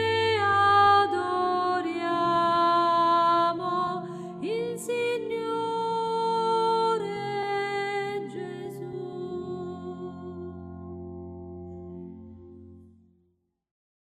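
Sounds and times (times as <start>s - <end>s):
soprano voices singing: 0.0s - 11.0s.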